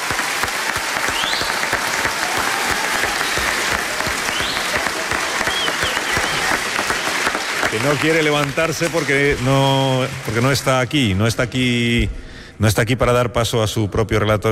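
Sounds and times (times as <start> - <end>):
audience applause: 0.0 - 11.0
speech: 7.8 - 14.5.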